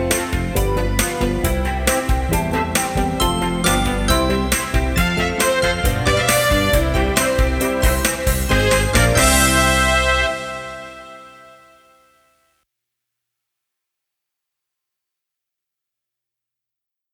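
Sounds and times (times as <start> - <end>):
karaoke backing track: 0.0 - 11.4.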